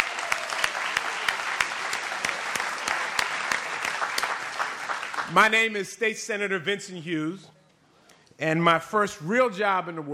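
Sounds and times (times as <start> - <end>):
audience round of applause: 0.0 - 5.8
speech: 5.3 - 7.5, 8.4 - 10.1.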